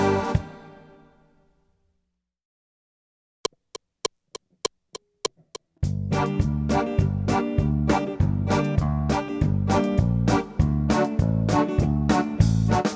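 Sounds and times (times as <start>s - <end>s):
klezmer music: 0.0s - 1.2s, 5.8s - 12.9s.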